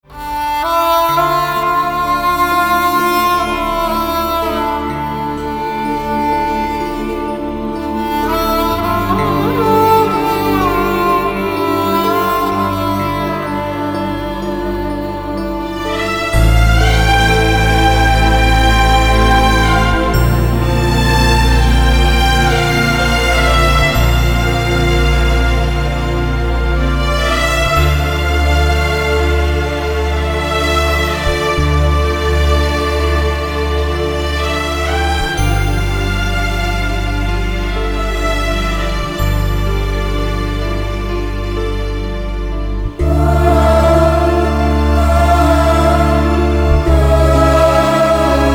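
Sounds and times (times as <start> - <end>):
instrumental music: 0.0 - 48.5.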